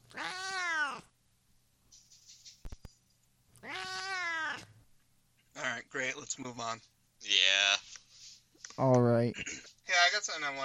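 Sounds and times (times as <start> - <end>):
cat meowing: 0.1 - 1.1, 3.6 - 4.7
speech: 6.3 - 7.8, 8.8 - 10.6.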